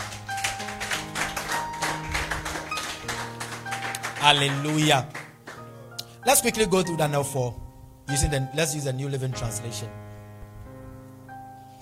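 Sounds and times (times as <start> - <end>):
audience clapping: 0.0 - 6.2
speech: 4.2 - 5.2, 6.2 - 10.0.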